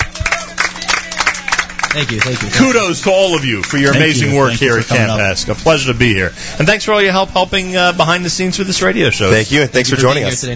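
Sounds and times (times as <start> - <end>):
audience applause: 0.0 - 5.0
speech: 2.0 - 10.5.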